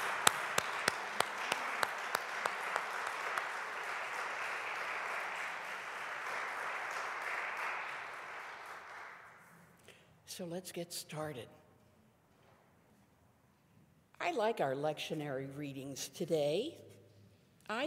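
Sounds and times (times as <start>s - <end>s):
crowd applauding: 0.0s - 9.4s
speech: 10.4s - 11.6s, 14.3s - 16.8s, 17.7s - 17.8s.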